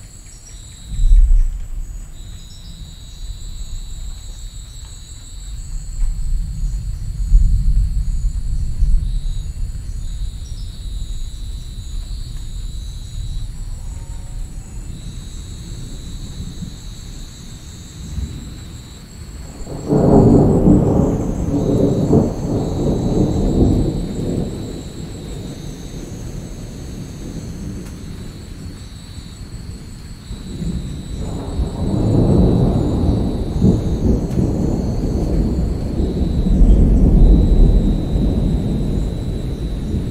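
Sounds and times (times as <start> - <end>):
rain in the highlands: 0.0 - 40.0.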